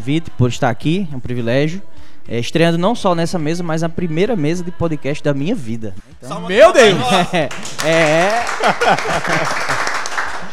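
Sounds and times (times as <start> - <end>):
speech: 0.0 - 9.8
laughter: 6.6 - 10.5
church congregation applauding: 7.4 - 10.5.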